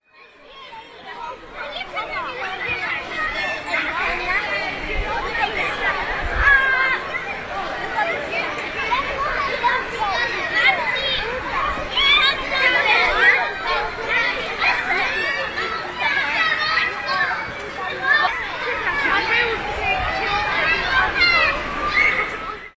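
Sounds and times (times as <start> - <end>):
children: 0.0 - 22.7.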